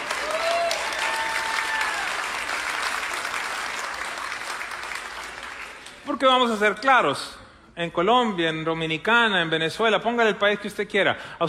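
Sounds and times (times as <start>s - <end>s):
audience applause: 0.0s - 6.0s
speech: 6.1s - 11.4s.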